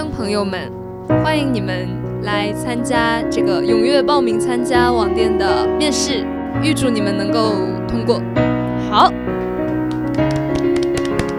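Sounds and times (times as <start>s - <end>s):
speech: 0.2s - 9.2s
thin applause: 9.4s - 11.3s.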